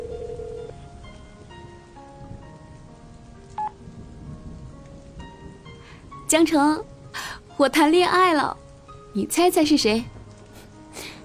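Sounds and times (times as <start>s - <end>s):
phone call ringing unanswered: 0.0s - 0.7s
steady rain-like hiss: 0.7s - 11.2s
speech: 6.3s - 6.9s, 7.6s - 8.6s, 9.2s - 10.2s.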